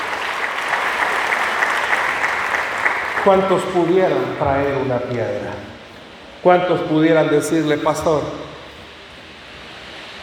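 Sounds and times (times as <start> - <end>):
audience applause: 0.0 - 5.7
speech: 3.2 - 5.7, 6.4 - 8.5.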